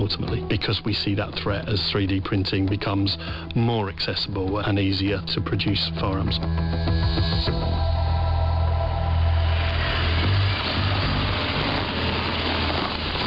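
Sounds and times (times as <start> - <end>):
speech: 0.1 - 8.0
black BMW engine rumble pulling up on a suburban street in Bradford: 6.5 - 13.2
dense broadband road noise: 6.8 - 13.2.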